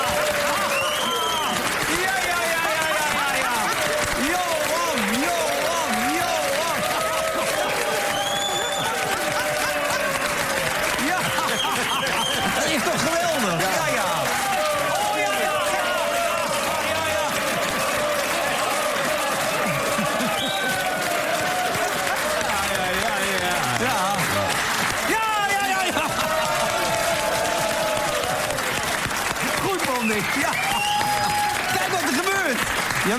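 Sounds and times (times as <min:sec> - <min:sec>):
audience applause: 0:00.0 - 0:33.1
laughter: 0:01.9 - 0:28.5.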